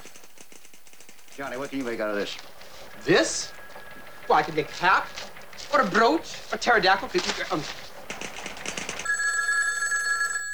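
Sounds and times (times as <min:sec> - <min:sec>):
speech: 0:01.4 - 0:03.6, 0:04.3 - 0:07.8
telephone bell ringing: 0:02.3 - 0:10.5.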